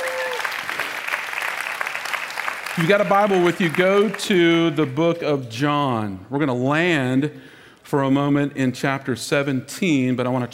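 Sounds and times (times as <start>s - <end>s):
audience applauding: 0.0s - 5.0s
speech: 2.8s - 10.5s.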